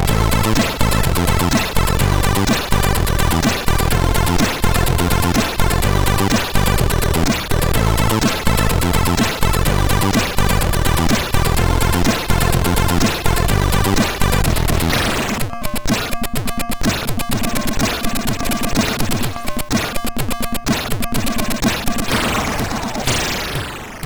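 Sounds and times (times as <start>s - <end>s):
funk music on a MOS 6581R4 SID chip: 0.0s - 24.0s.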